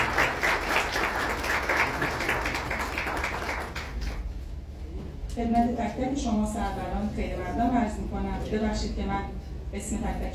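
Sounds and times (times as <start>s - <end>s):
audience applause at a gathering of a literary friends' association: 0.0s - 4.3s
speech: 5.4s - 10.3s.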